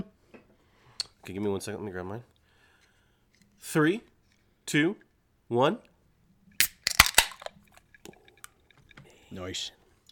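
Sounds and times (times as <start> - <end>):
speech: 1.2 - 2.4, 3.6 - 4.1, 4.7 - 5.9, 9.3 - 9.8
drink can popping open: 6.6 - 7.9.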